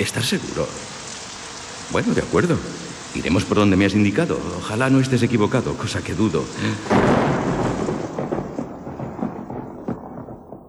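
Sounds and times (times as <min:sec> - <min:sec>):
speech: 0:00.0 - 0:01.0, 0:01.9 - 0:07.6
thunder in a thunderstorm: 0:06.6 - 0:10.6.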